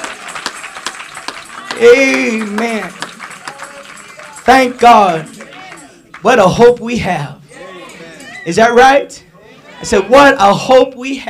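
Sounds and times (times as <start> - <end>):
audience clapping hands: 0.0 - 6.8
speech: 1.8 - 3.0, 4.5 - 5.3, 6.2 - 7.4, 8.4 - 9.2, 9.8 - 11.2.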